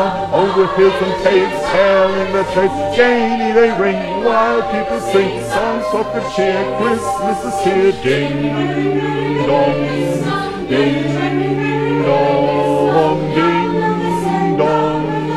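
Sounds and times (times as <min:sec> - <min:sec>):
bass: 0:00.0 - 0:15.3
gospel choir singing: 0:00.0 - 0:15.3.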